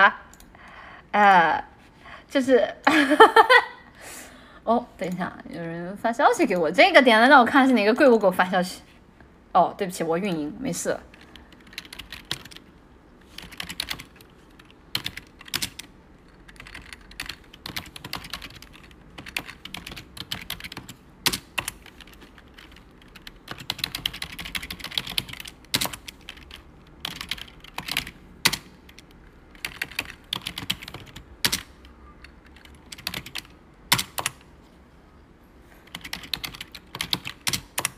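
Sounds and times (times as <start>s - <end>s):
speech: 1.1s - 1.7s, 2.3s - 8.9s, 9.5s - 11.1s
computer keyboard typing: 11.1s - 34.5s, 35.8s - 37.9s.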